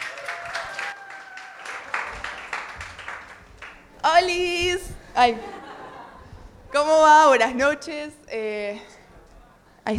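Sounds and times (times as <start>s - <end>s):
crowd applauding: 0.0s - 3.9s
speech: 4.0s - 5.6s, 6.8s - 8.9s
laughter: 5.3s - 6.5s.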